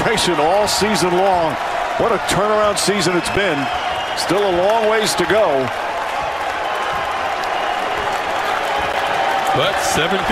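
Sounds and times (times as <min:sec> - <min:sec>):
basketball fans cheering in arena: 0:00.0 - 0:10.3
speech: 0:00.1 - 0:05.8, 0:09.6 - 0:10.3.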